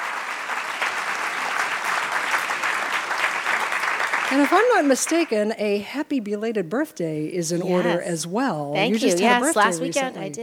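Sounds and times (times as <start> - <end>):
audience applause: 0.0 - 5.3
speech: 4.3 - 10.4.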